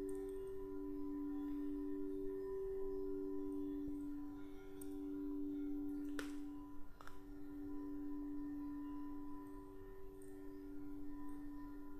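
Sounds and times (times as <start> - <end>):
crystal singing bowls droning: 0.0 - 11.9.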